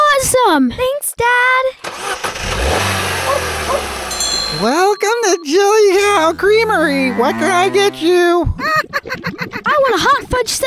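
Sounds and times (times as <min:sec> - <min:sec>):
speech: 0:00.5 - 0:01.8, 0:04.6 - 0:08.6, 0:09.8 - 0:10.6
car engine accelerating as car drives off: 0:01.9 - 0:04.6.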